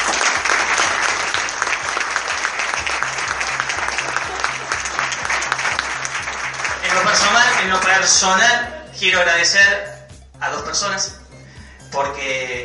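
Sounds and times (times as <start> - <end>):
audience applause: 0.0 - 7.8
speech: 8.0 - 11.2, 11.9 - 12.6.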